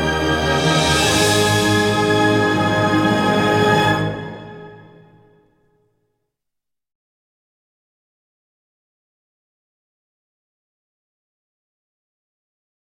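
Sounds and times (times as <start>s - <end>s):
classic background music: 0.0s - 5.9s.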